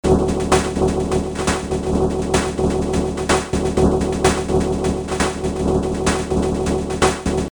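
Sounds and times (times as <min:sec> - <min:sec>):
drum: 0:00.0 - 0:07.5.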